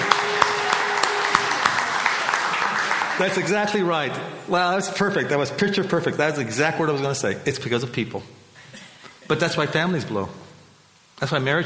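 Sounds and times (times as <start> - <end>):
audience round of applause: 0.0 - 4.2
speech: 3.2 - 8.4, 9.3 - 10.4, 11.2 - 11.6.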